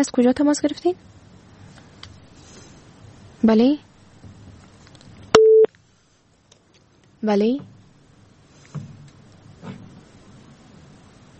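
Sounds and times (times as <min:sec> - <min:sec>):
speech: 0:00.0 - 0:01.2, 0:03.4 - 0:03.9, 0:07.2 - 0:07.7
telephone busy tone on a call-in line after the caller disconnects: 0:05.4 - 0:05.7.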